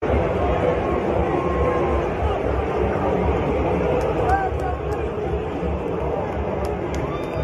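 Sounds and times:
ballpark crowd booing: 0.0 - 7.4
scattered sharp claps: 3.9 - 5.2, 5.8 - 7.4.

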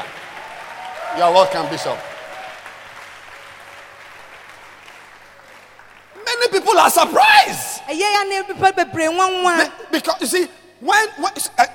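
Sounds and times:
audience applause welcoming a bishop from Lagos, Nigeria: 0.0 - 6.8
speech: 1.2 - 2.1, 6.8 - 11.7.

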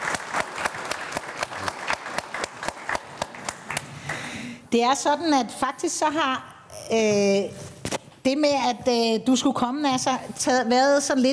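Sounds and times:
audience applause: 0.0 - 4.3
speech: 4.7 - 7.6, 8.2 - 11.3.

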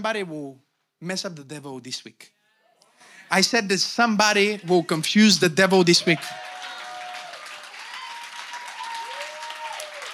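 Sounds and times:
speech: 0.0 - 2.4, 3.0 - 6.5
audience clapping: 5.7 - 10.1.

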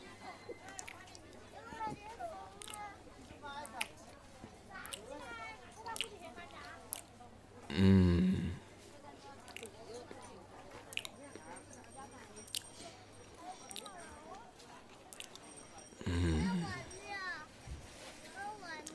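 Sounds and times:
taking a bite of food and chewing: 0.0 - 17.4, 18.6 - 18.9
murmured vocal sounds: 7.6 - 8.8, 16.0 - 17.0.

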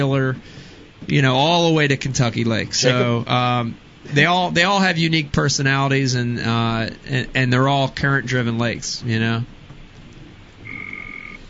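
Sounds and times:
speech: 0.0 - 9.6
bullfrog croaking: 10.6 - 11.4.

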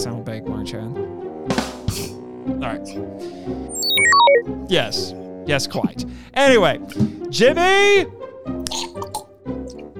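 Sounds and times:
speech: 0.0 - 1.7, 2.6 - 9.0
slurping a drink: 8.6 - 9.2.

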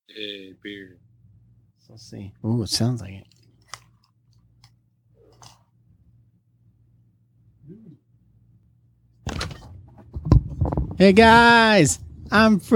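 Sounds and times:
speech: 0.1 - 1.1, 1.8 - 3.4, 11.0 - 12.7
refrigerator humming: 0.2 - 12.7
refrigerator door opening: 9.2 - 11.3.

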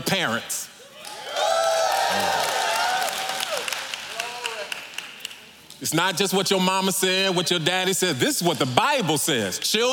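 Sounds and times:
speech: 0.1 - 0.7, 2.1 - 2.5, 5.8 - 9.9
audience applauding and hollering: 1.0 - 5.2.

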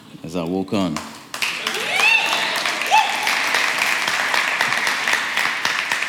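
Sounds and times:
speech: 0.3 - 1.1
audience clapping: 1.0 - 6.0
whoops and whistles: 1.6 - 3.4.

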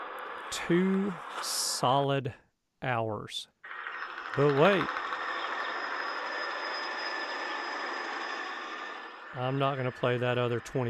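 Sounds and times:
speech: 0.5 - 3.6, 4.4 - 5.0, 9.4 - 10.8
helicopter flying overhead while spraying: 3.7 - 10.8.

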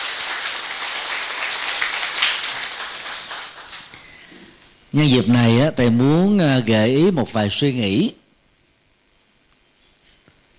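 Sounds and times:
welcoming round of applause from a group: 0.0 - 4.2
speech: 4.9 - 8.2.

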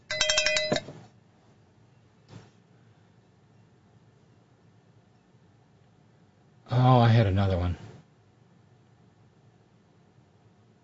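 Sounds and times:
cowbell sound effect: 0.0 - 0.9
speech: 6.7 - 7.8.

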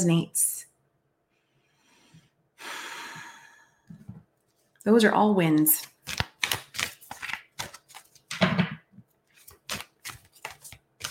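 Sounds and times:
speech: 0.0 - 0.6, 4.8 - 5.9
deck of cards handled at a desk: 5.8 - 8.4, 9.4 - 11.1.

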